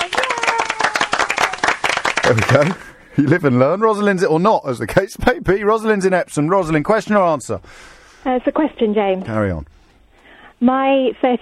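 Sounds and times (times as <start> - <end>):
round of applause: 0.0 - 2.9
speech: 2.3 - 9.8, 10.6 - 11.4.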